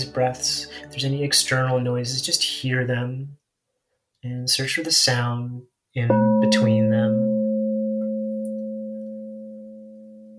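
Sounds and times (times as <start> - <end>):
speech: 0.1 - 3.4, 4.2 - 7.3
singing bowl ringing: 6.1 - 10.3.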